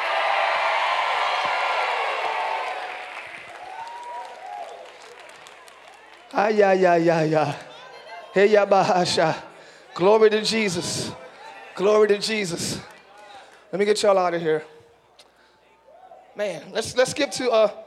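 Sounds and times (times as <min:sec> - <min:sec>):
audience screaming: 0:00.0 - 0:06.2
speech: 0:06.3 - 0:07.7, 0:08.4 - 0:11.2, 0:11.8 - 0:12.9, 0:13.7 - 0:14.8, 0:16.4 - 0:17.8.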